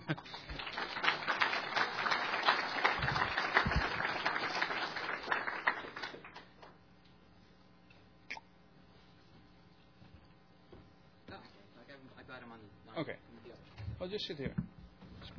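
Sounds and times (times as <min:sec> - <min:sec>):
audience applause: 0:00.0 - 0:06.7
speech: 0:14.1 - 0:14.6.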